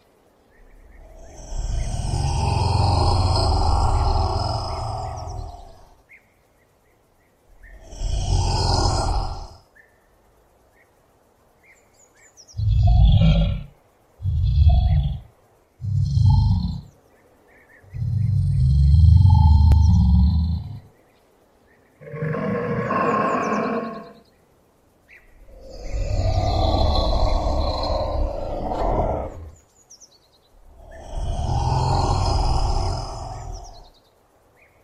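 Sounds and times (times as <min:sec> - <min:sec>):
Komodo dragon: 0:00.6 - 0:06.0, 0:07.5 - 0:09.6, 0:12.6 - 0:16.9, 0:17.8 - 0:20.9, 0:22.0 - 0:24.2, 0:25.4 - 0:29.6, 0:30.6 - 0:33.9.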